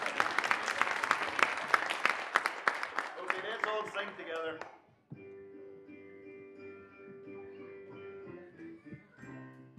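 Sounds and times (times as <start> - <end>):
group clapping: 0.0 - 4.8.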